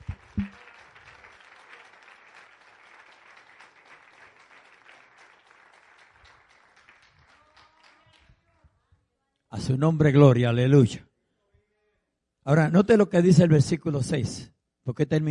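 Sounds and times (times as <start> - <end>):
audience applause: 0.0 - 8.2
speech: 9.6 - 11.1, 12.5 - 15.2.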